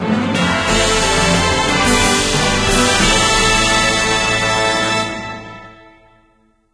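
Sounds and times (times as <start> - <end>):
victory jingle: 1.0 - 5.6.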